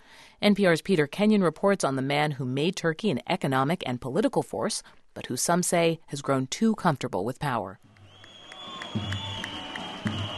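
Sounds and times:
speech: 0.4s - 7.9s
crowd cheering and clapping at a political rally in Turkey for Recep Tayyip Erdogan: 7.9s - 10.3s.

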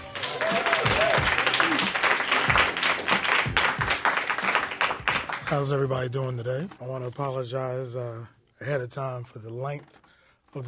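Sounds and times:
audience applause: 0.0s - 5.6s
speech: 5.5s - 10.6s.

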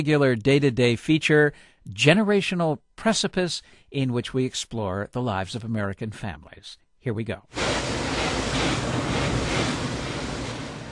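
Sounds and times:
speech: 0.0s - 9.8s
car wash spraying water heard from inside car: 7.6s - 10.8s.

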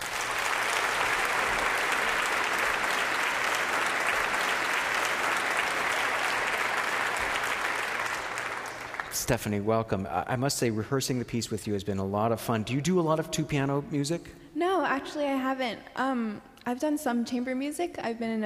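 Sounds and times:
audience applause welcoming a pianist: 0.0s - 9.8s
speech: 9.2s - 18.4s.

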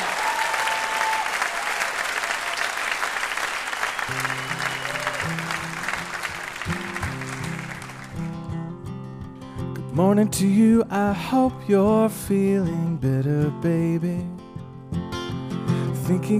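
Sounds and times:
audience applause: 0.0s - 8.4s
speech: 10.0s - 14.4s, 16.1s - 16.3s.

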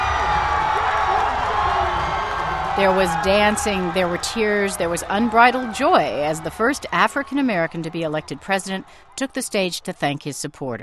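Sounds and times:
crowd cheering in downtown Chicago as Barack Obama is declared president-elect: 0.0s - 10.2s
speech: 2.8s - 10.8s.

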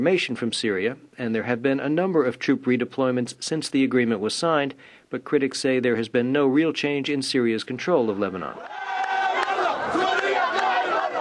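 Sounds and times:
speech: 0.0s - 9.1s
large raucous crowd shouting and chanting while marching toward Martyr Square in Lebanon: 8.5s - 11.1s.

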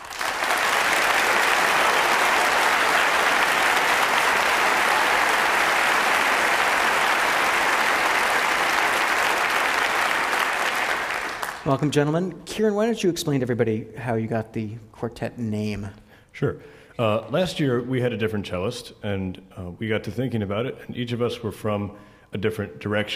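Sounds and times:
audience applause welcoming a young string quartet from Rochester: 0.0s - 11.9s
speech: 11.7s - 23.1s.

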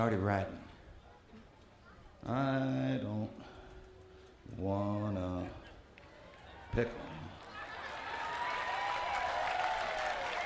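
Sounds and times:
speech: 0.0s - 0.6s, 2.2s - 3.5s, 4.5s - 5.6s, 6.7s - 7.3s
audience clapping: 7.4s - 10.4s.

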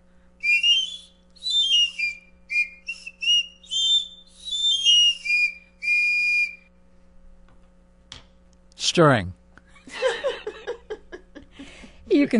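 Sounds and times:
pan flute playing: 0.4s - 6.6s
speech: 9.0s - 9.4s, 12.2s - 12.3s
laughter: 9.7s - 11.8s.

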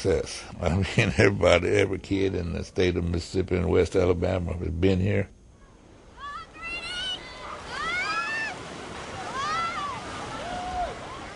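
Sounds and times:
speech: 0.0s - 5.4s
waves in the giant wave pool at the Geyser Falls Water Park: 6.0s - 11.3s.

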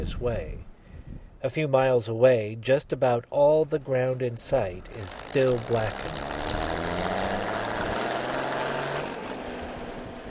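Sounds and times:
speech: 0.0s - 0.7s, 1.4s - 6.6s
truck engine running while drilling pole holes: 4.4s - 10.3s.

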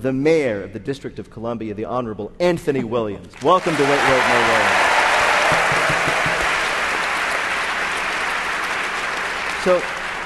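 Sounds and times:
speech: 0.0s - 4.9s, 9.6s - 10.0s
studio audience applause on a comedy quiz show: 3.4s - 10.2s.

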